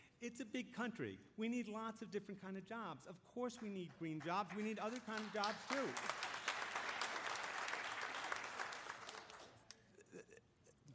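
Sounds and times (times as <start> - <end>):
speech: 0.2 - 6.2
audience applause: 4.2 - 9.7.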